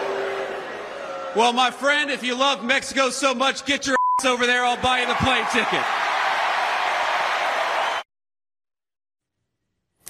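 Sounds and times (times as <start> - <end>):
crowd applause at a rally: 0.0 - 2.1, 4.6 - 8.0
speech: 1.3 - 6.0.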